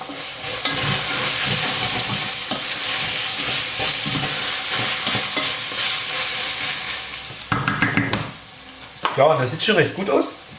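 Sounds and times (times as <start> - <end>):
scraping and clinking as meat and onions are stirred in the pan: 0.0 - 7.6
meat and onions frying in lard: 0.0 - 10.5
speech: 9.2 - 10.4.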